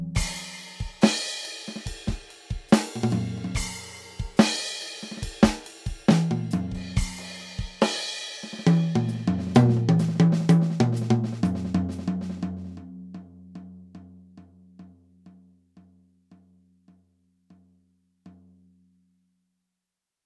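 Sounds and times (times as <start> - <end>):
drum kit splash cymbal: 0.2 - 12.5.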